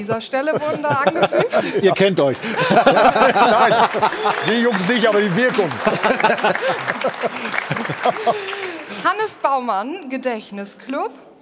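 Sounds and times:
laughter: 0.0 - 9.3
speech: 0.0 - 11.3
audience applause: 2.2 - 9.4.

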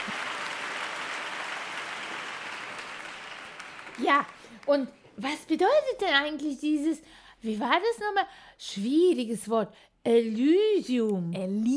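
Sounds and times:
audience clapping enthusiastically: 0.0 - 4.9
speech: 4.0 - 11.7.

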